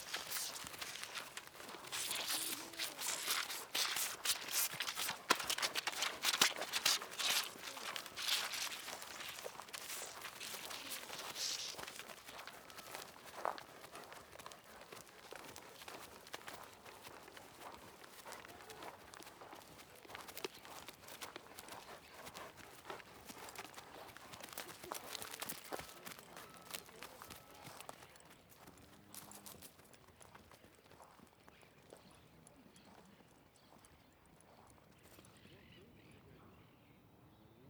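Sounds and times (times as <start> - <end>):
horse breathing: 0.0 - 26.4
horse walking and trotting around the microphone: 0.0 - 35.4.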